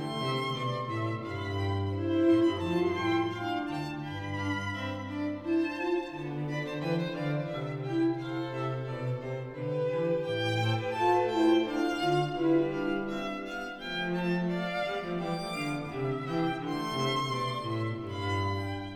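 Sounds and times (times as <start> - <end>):
canon for two violins, viola and bass: 0.0 - 18.9.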